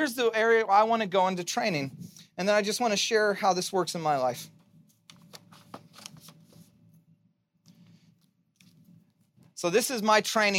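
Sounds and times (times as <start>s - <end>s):
speech: 0.0s - 4.6s, 9.6s - 10.5s
stiff 4x6 index cards rustling, flicking and shuffling: 4.8s - 6.7s.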